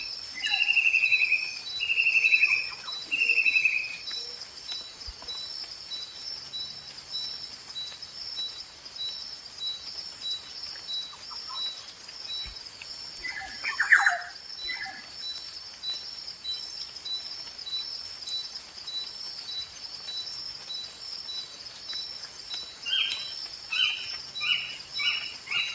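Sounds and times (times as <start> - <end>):
equatorial forest soundscape in Papua: 0.0 - 25.7.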